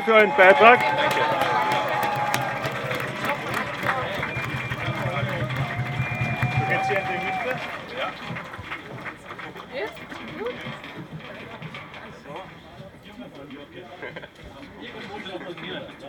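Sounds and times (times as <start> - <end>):
speech: 0.0 - 1.3, 13.4 - 16.0
rally crowd applauding: 0.0 - 10.6
cheers and raised voices: 0.0 - 10.7.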